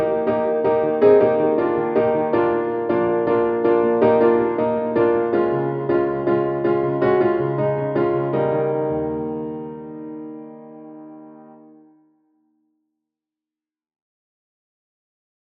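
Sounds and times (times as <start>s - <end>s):
piano jingle: 0.0s - 12.0s.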